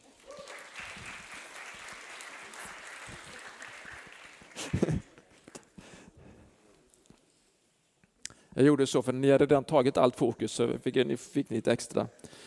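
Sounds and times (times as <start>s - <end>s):
audience applause: 0.0s - 5.2s
speech: 8.6s - 12.4s.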